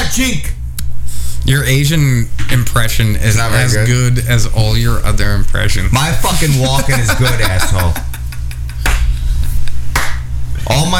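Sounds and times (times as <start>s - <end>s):
speech: 0.2s - 0.6s, 1.4s - 8.2s, 10.6s - 10.9s
laughter: 6.4s - 9.0s
slow golf clap: 10.0s - 10.2s.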